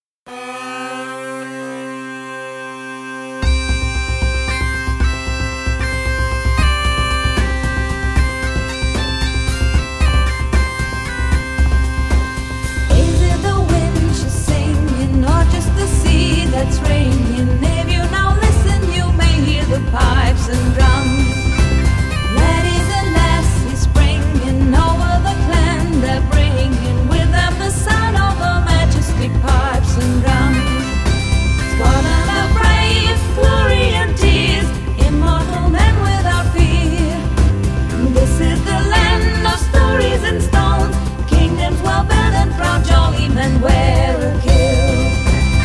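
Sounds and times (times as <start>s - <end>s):
pipes: 0.3s - 45.6s.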